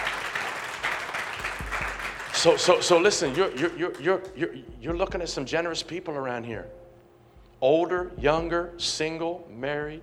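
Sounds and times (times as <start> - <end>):
audience applause: 0.0 - 4.0
speech: 2.4 - 6.8, 7.6 - 10.0.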